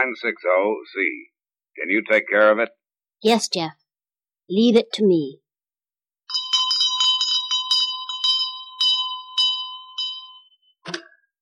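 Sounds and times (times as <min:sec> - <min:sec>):
speech: 0:00.0 - 0:03.8, 0:04.5 - 0:05.4
bell rung to summon a servant: 0:06.3 - 0:10.8.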